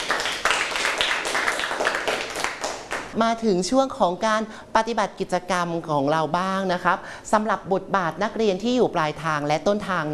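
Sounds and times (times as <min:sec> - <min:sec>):
group of students applauding: 0:00.0 - 0:03.2
speech: 0:03.2 - 0:10.1.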